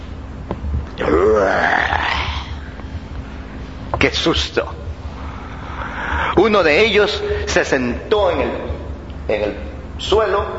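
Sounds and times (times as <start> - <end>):
grizzly bear growl: 1.0 - 2.6
speech: 4.0 - 4.8, 6.4 - 8.7, 9.3 - 10.5.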